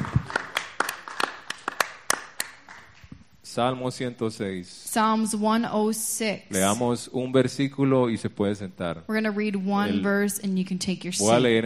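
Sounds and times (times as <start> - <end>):
audience hand clapping: 0.0 - 3.1
speech: 3.6 - 11.6.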